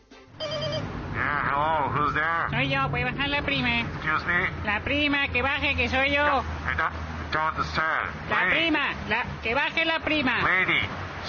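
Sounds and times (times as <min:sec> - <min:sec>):
intercom buzzer ringing: 0:00.4 - 0:00.9
speech: 0:02.2 - 0:11.2.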